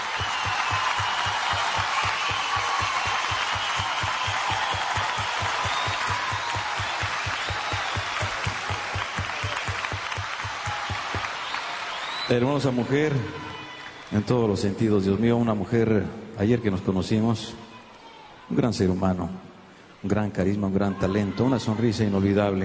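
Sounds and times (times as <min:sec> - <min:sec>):
audience applause: 0:00.0 - 0:14.5
speech: 0:12.3 - 0:13.5, 0:14.1 - 0:17.6, 0:18.5 - 0:22.6.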